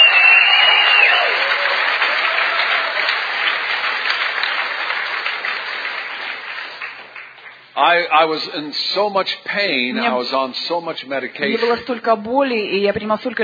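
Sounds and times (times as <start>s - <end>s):
crowd applause: 0.0s - 8.1s
speech: 7.9s - 13.4s.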